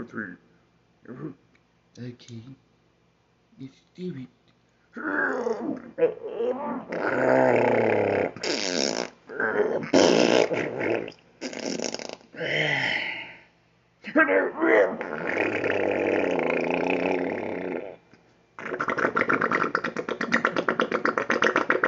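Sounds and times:
speech: 0.0s - 1.4s, 2.0s - 2.7s, 3.6s - 4.4s, 5.0s - 13.0s, 14.0s - 16.0s
voice making fart noises: 5.0s - 12.4s, 14.6s - 18.0s, 18.6s - 21.8s.

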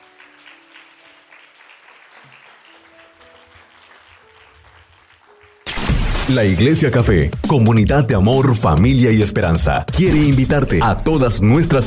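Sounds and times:
audience applause: 0.0s - 5.7s
sudden loud burst: 5.7s - 6.8s
sustained organ or keyboard tones: 6.1s - 11.8s
speech: 6.3s - 11.8s.

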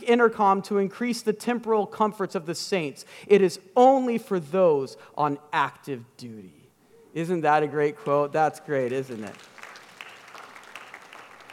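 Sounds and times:
speech: 0.1s - 6.6s, 7.2s - 9.5s
smattering of applause: 8.9s - 11.5s.

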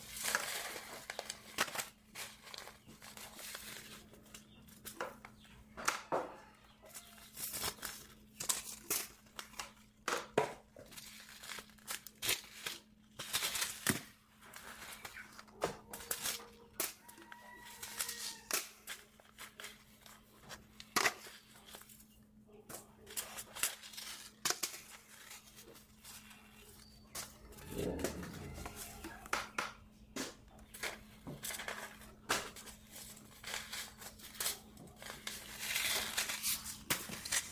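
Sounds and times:
seed packets rustling while being sorted: 0.0s - 5.1s, 6.9s - 22.2s, 22.9s - 29.5s, 30.4s - 37.5s
steady low hum: 26.2s - 30.7s.

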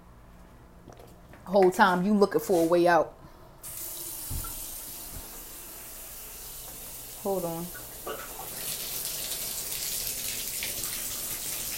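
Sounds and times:
speech: 1.5s - 3.2s, 7.3s - 7.8s
tap water running for hand washing: 3.6s - 11.7s.

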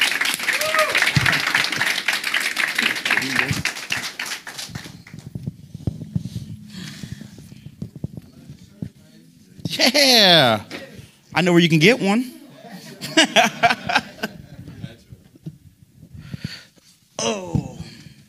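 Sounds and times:
audience applause: 0.0s - 5.3s
speech: 9.8s - 10.7s, 11.4s - 12.3s
laughter: 12.4s - 15.0s.

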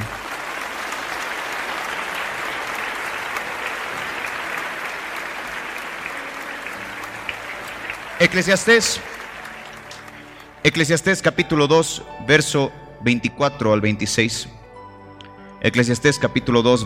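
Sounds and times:
crowd applause: 0.0s - 11.3s
speech: 8.2s - 9.2s, 10.6s - 14.6s, 15.6s - 16.8s.

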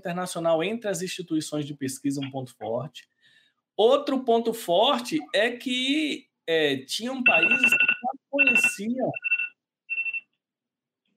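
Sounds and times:
speech: 0.0s - 3.2s, 3.8s - 9.3s
mobile phone alarm: 7.2s - 10.3s.

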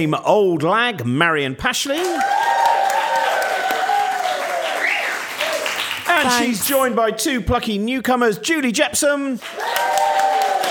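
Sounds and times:
speech: 0.0s - 2.6s, 6.2s - 10.1s
studio audience applause at a panel game show: 2.0s - 6.8s, 9.4s - 10.6s.

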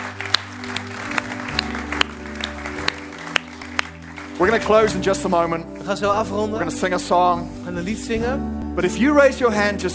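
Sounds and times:
audience applause: 0.0s - 5.0s
speech: 4.4s - 9.9s.

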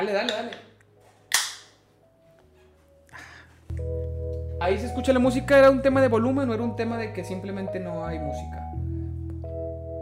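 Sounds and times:
speech: 0.0s - 0.7s, 4.6s - 8.8s
beer can being opened: 1.3s - 1.8s.

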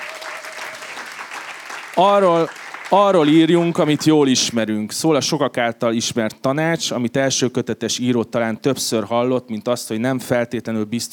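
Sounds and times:
audience applause: 0.0s - 4.4s
speech: 2.0s - 11.1s.

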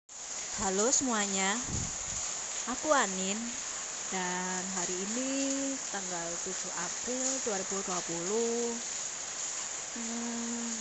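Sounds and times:
rain falling: 0.1s - 10.7s
speech: 0.6s - 2.1s, 2.7s - 9.0s, 10.0s - 10.7s
person humming: 10.0s - 10.7s.

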